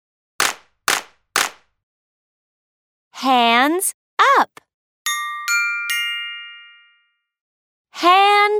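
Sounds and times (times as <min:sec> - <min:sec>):
hands clapping to a clap-your-hands routine: 0:00.4 - 0:01.6
speech: 0:03.2 - 0:04.6, 0:08.0 - 0:08.5.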